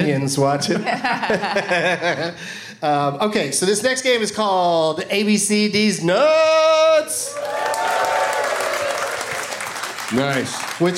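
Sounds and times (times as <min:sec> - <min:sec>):
speech: 0:00.0 - 0:07.7, 0:10.1 - 0:10.9
laughter: 0:00.6 - 0:02.6
audience applause at a live quiz game: 0:07.3 - 0:10.9.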